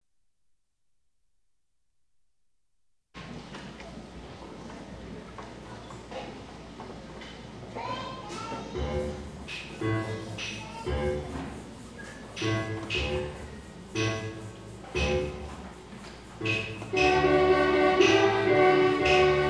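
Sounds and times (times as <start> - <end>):
Latin tango music: 8.8 - 11.6, 12.4 - 15.6, 16.4 - 19.4.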